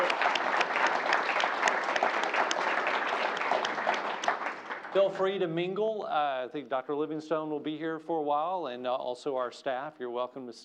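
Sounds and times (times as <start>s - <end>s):
audience applauding the president at an evening event in Nashville: 0.0s - 5.6s
speech: 5.0s - 10.6s.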